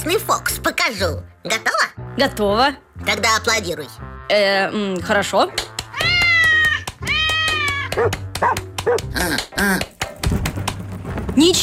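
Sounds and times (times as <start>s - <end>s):
speech: 0.0s - 5.7s, 8.0s - 9.9s, 11.4s - 11.6s
cat meowing: 5.9s - 8.0s.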